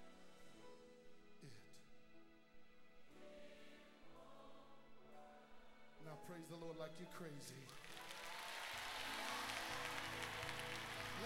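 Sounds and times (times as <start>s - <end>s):
speech: 6.3s - 7.9s
audience clapping hands: 7.6s - 11.2s.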